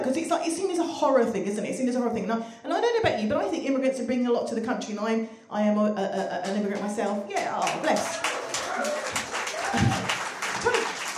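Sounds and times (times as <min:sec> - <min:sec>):
speech: 0:00.2 - 0:10.0
audience clapping: 0:06.4 - 0:11.1.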